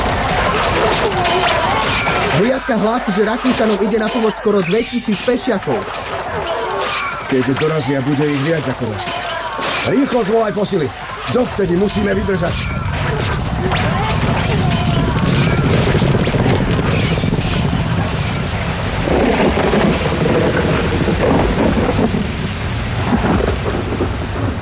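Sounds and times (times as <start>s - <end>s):
laughter: 0.0s - 4.8s
heavy rain in a radio drama: 0.0s - 24.6s
speech: 2.5s - 6.6s, 7.3s - 12.8s
rumbling thunder: 12.0s - 24.6s.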